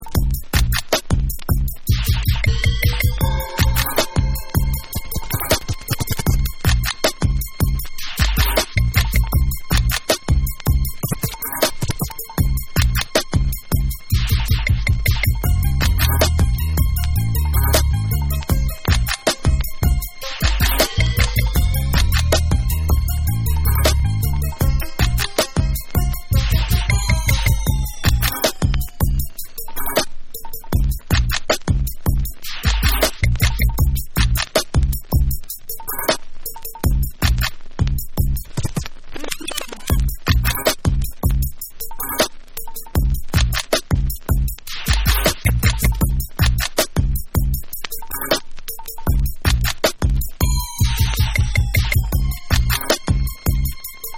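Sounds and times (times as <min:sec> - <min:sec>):
instrumental club mix: 0:00.0 - 0:54.1.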